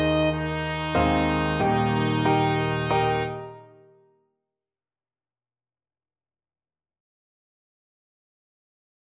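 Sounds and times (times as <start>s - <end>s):
trumpet: 0.0s - 4.0s.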